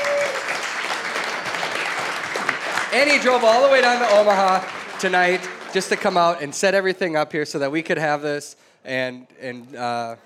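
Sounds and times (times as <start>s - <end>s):
audience applause: 0.0s - 6.7s
speech: 2.9s - 10.2s.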